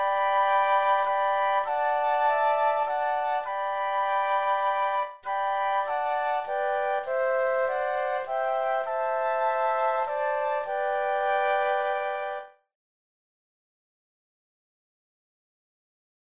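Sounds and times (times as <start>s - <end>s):
flute trio playing: 0.0s - 12.6s.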